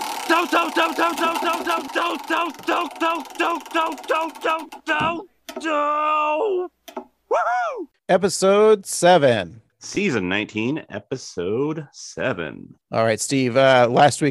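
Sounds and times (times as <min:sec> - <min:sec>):
spinning wheel sound effect picking a TV episode: 0:00.0 - 0:05.1
speech: 0:00.3 - 0:14.2.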